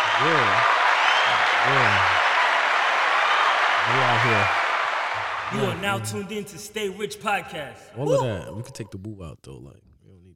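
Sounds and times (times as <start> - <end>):
clapping sound effect, dense applause: 0.0 - 7.1
speech: 0.2 - 2.2, 3.9 - 4.6, 5.5 - 9.9
voice calling out in short rising-and-falling bursts: 5.5 - 6.1, 7.9 - 9.1.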